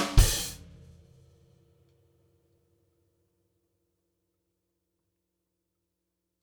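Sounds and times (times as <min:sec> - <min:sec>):
power rock rehearsal drum track: 0:00.2 - 0:00.6.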